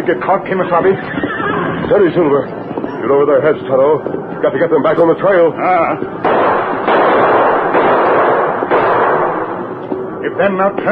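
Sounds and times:
speech: 0:00.0 - 0:06.6, 0:10.2 - 0:10.9
loud continuous roar: 0:00.0 - 0:10.6
gunshots: 0:06.2 - 0:10.0.

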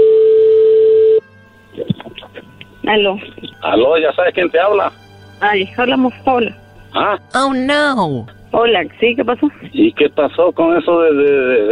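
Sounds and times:
loud steady telephone tone: 0:00.0 - 0:01.2
speech: 0:02.9 - 0:11.6.

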